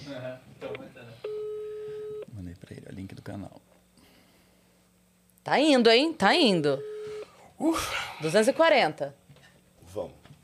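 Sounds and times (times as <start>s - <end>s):
speech: 0.1s - 1.2s, 2.7s - 3.7s, 5.5s - 6.9s, 7.6s - 9.2s, 10.0s - 10.2s
electronic tone of a phone call to a father being placed: 1.2s - 2.3s, 6.8s - 7.3s.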